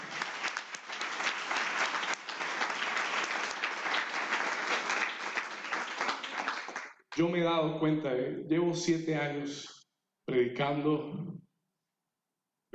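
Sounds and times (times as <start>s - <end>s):
loud audience applause: 0.0s - 7.0s
speech: 7.2s - 9.7s, 10.3s - 11.3s.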